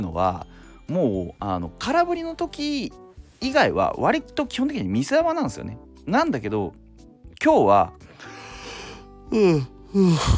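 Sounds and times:
speech: 0.0 - 6.8, 7.4 - 8.3, 9.3 - 10.3
voiced yawn: 8.7 - 10.3.

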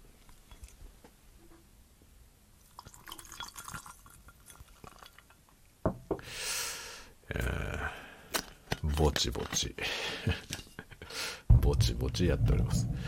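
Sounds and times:
gin poured into a glass over ice: 2.6 - 5.4
soft clinks of ice in a glass: 2.7 - 5.4
sharp glassy knocks: 5.8 - 6.2
speech: 9.0 - 10.6, 11.6 - 13.0.

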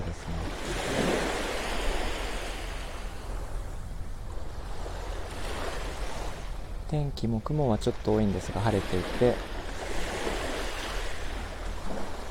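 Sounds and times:
low rumble: 0.0 - 8.3
calm morning sea waves: 0.0 - 12.3
speech: 6.9 - 9.5.

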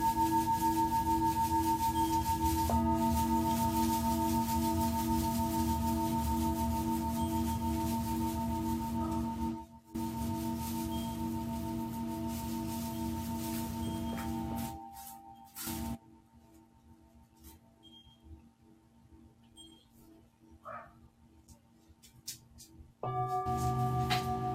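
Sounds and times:
singing bowls ringing: 0.0 - 16.0, 23.0 - 24.5.

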